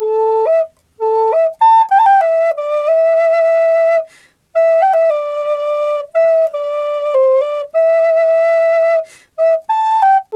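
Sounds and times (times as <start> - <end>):
flute: 0.0 - 10.3.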